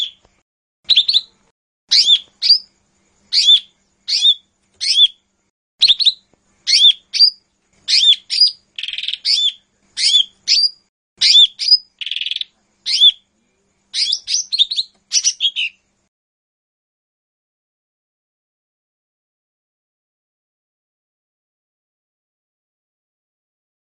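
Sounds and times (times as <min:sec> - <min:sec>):
Lesser green leafbird singing whistles, chirps and buzzy chatter: 0:00.9 - 0:02.7, 0:03.3 - 0:05.2, 0:05.8 - 0:13.3, 0:13.9 - 0:15.8.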